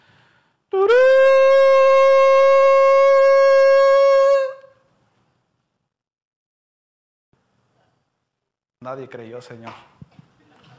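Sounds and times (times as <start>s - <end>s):
horns blowing: 0.8s - 4.7s
speech: 8.9s - 9.9s.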